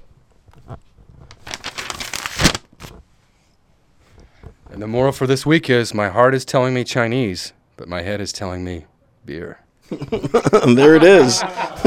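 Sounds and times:
speech: 0:00.7 - 0:00.9, 0:04.8 - 0:11.8
envelope being ripped open: 0:01.3 - 0:03.0
laughter: 0:09.9 - 0:11.8.

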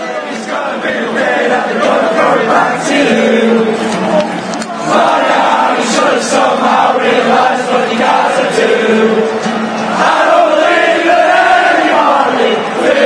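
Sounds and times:
Manchester City football fans singing in stadium: 0:00.0 - 0:13.0
speech: 0:00.6 - 0:04.3.

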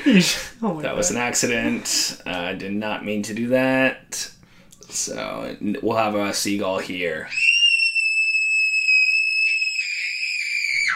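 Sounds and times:
speech: 0:00.1 - 0:07.6
little kid screaming: 0:07.3 - 0:10.9.

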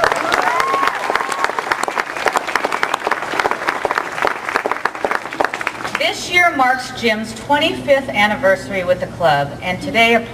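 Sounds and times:
audience applause: 0:00.0 - 0:06.0
speech: 0:06.5 - 0:10.3.

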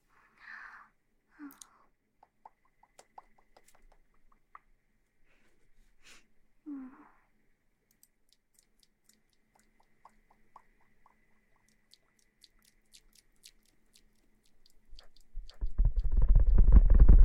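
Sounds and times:
soft squeaks and taps: 0:01.6 - 0:04.7, 0:08.0 - 0:17.1.

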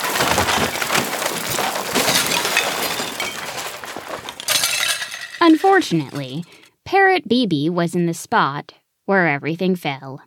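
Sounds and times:
stool tipping over in a closet: 0:00.0 - 0:06.5
speech: 0:05.5 - 0:10.2.

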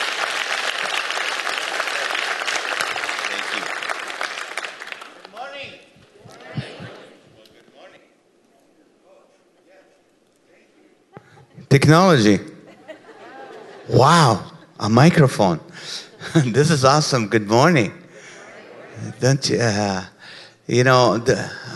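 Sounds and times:
church congregation applause welcoming a guest speaker: 0:00.0 - 0:07.2
laughter: 0:06.0 - 0:07.4, 0:12.6 - 0:14.7, 0:15.8 - 0:17.1, 0:18.1 - 0:19.8
speech: 0:11.8 - 0:12.5, 0:13.9 - 0:18.0, 0:19.0 - 0:20.1, 0:20.7 - 0:21.6.

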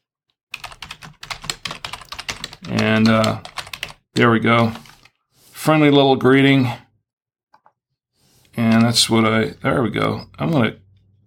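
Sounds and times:
typing a greeting on a computer keyboard: 0:00.5 - 0:04.0
speech: 0:02.6 - 0:03.5, 0:04.2 - 0:04.9, 0:05.6 - 0:06.8, 0:08.6 - 0:10.8.

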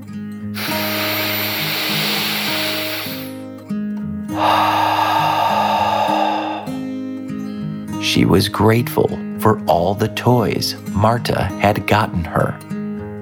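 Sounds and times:
deep breath in and out: 0:00.6 - 0:03.4, 0:04.3 - 0:07.0
soft music: 0:03.5 - 0:13.1
speech: 0:08.1 - 0:12.7.

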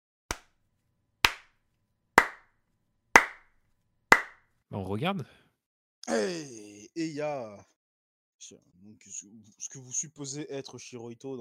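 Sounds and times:
sharp hand claps from somewhere above: 0:00.3 - 0:00.6, 0:01.2 - 0:01.6, 0:02.2 - 0:02.5, 0:03.2 - 0:03.5, 0:04.1 - 0:04.4
speech: 0:04.8 - 0:05.4, 0:06.1 - 0:07.7, 0:08.4 - 0:11.3.

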